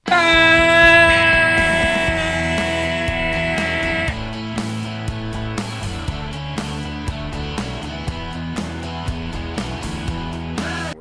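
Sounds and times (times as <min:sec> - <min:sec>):
voice imitating a game horn: 0:00.0 - 0:04.3
laughter: 0:00.0 - 0:08.1
low rhythmic thumps: 0:00.0 - 0:10.9.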